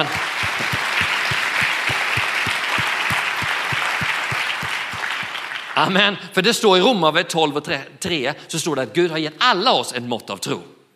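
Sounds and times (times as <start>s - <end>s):
audience applause with synchronized claps: 0.0s - 6.1s
speech: 5.8s - 10.8s.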